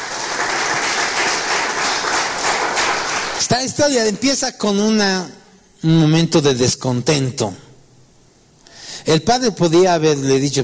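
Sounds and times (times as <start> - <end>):
audience applause: 0.0 - 3.5
speech: 3.5 - 7.6, 9.0 - 10.6.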